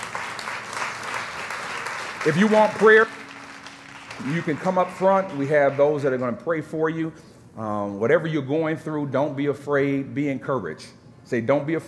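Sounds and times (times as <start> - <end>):
audience clapping hands: 0.0 - 6.4
speech: 2.2 - 3.2, 4.2 - 11.8.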